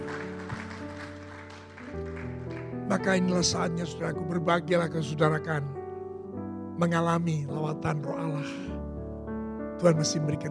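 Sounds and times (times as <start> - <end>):
audience applause: 0.0 - 2.8
speech: 2.9 - 5.8, 6.8 - 8.9, 9.8 - 10.4.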